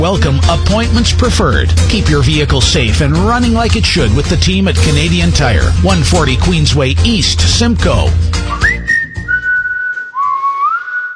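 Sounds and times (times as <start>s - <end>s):
speech: 0.0s - 8.6s
person whistling in an empty house: 8.4s - 11.1s.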